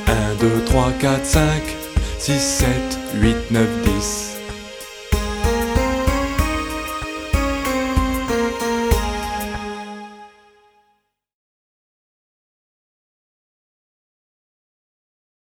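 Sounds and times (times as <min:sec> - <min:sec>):
karaoke backing track: 0:00.0 - 0:10.2.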